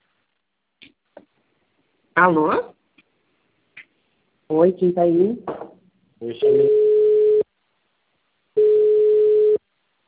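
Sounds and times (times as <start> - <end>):
speech: 2.2 - 2.8, 4.5 - 5.6, 6.2 - 6.7
telephone busy signal after dropped call: 6.4 - 7.4, 8.6 - 9.6.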